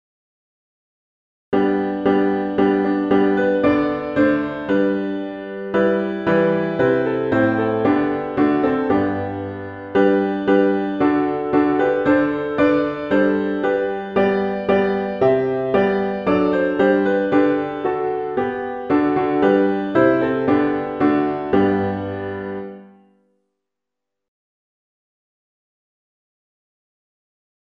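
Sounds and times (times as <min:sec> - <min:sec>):
piano playing all parts: 0:01.6 - 0:23.2.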